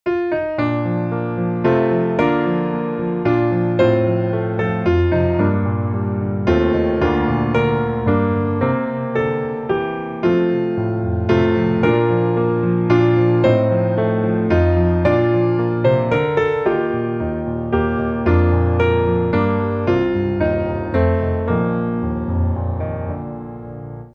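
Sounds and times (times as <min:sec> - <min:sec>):
piano: 0:00.0 - 0:24.1.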